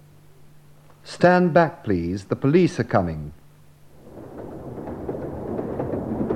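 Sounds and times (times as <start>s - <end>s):
speech: 1.1s - 3.4s
train approaching: 3.9s - 6.3s.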